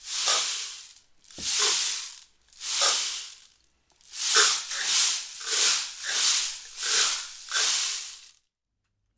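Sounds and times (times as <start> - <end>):
rainstick played in a rhythm: 0.0 - 8.4.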